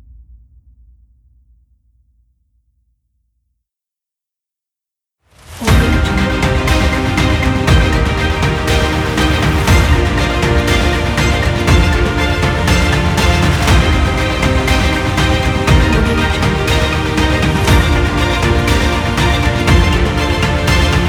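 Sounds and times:
motivational cinematic orchestral music: 5.6s - 21.0s.

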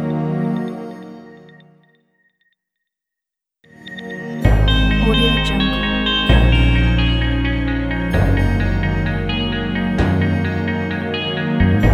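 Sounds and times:
uplifting upbeat pop music: 4.4s - 11.9s.

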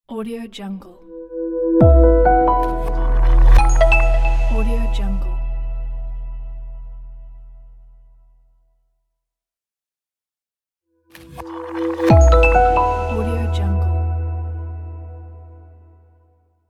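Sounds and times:
minimalist logo jingle: 1.1s - 6.4s, 11.2s - 15.8s.

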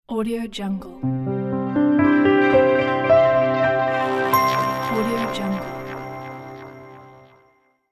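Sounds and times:
piano logo jingle: 1.3s - 7.6s.

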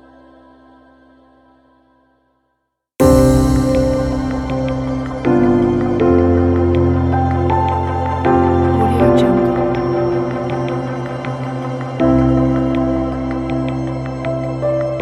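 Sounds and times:
ambient soundscape piano: 3.0s - 15.0s.

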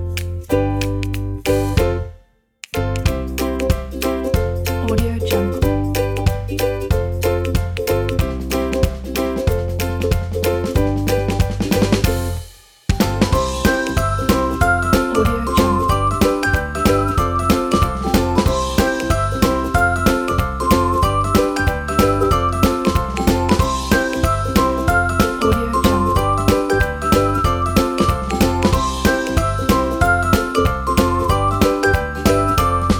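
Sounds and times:
ukulele: 0.0s - 12.4s, 13.0s - 32.9s
whistle: 13.4s - 22.3s, 25.8s - 32.9s.

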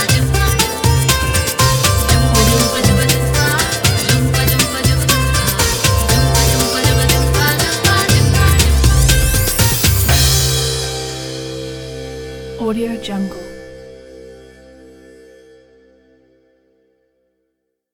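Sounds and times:
joyful Indian music intro: 0.0s - 13.3s.

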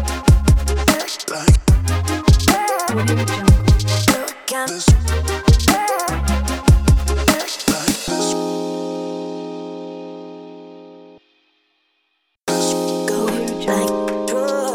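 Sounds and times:
future bass music: 0.0s - 8.5s, 12.5s - 14.7s.

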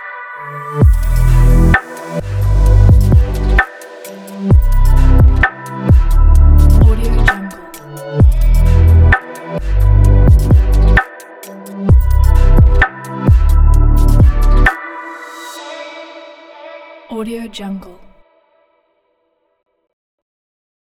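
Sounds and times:
abstract technology background music: 0.7s - 14.7s.

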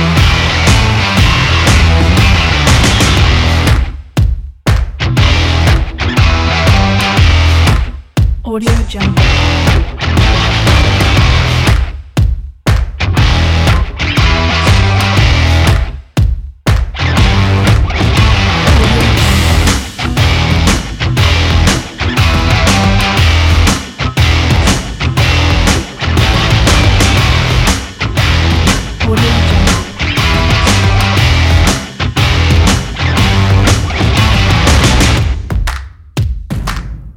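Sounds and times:
promo sport rock music: 0.0s - 37.0s.

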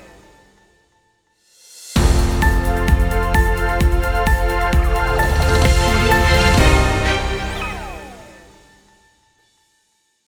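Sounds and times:
news logo jingle: 2.0s - 8.6s.

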